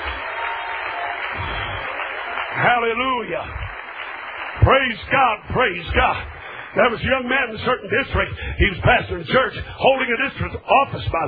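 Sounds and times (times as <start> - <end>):
congregation clapping hands at a church service: 0.0 - 8.4
speech: 2.6 - 3.7, 4.6 - 11.2.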